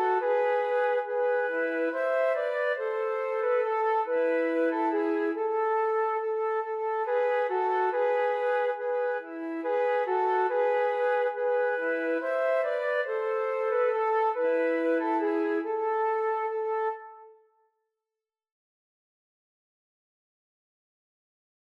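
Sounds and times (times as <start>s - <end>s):
siciliana flute duet: 0.0s - 17.4s.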